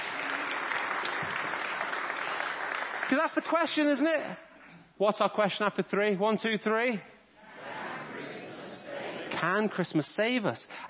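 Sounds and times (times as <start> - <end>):
audience applause: 0.0 - 3.9
speech: 3.1 - 7.1, 9.4 - 10.8.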